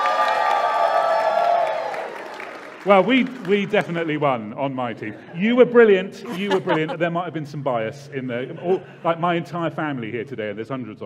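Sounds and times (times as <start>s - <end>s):
audience cheering and going wild: 0.0s - 3.8s
speech: 2.8s - 11.0s
laughter: 4.9s - 7.6s, 8.2s - 9.4s.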